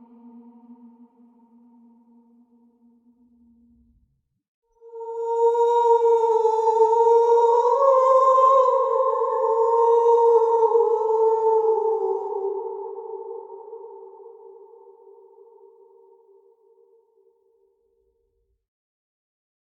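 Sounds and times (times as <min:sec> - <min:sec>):
scary ghostly woman singing: 0:00.0 - 0:02.5, 0:04.8 - 0:16.9.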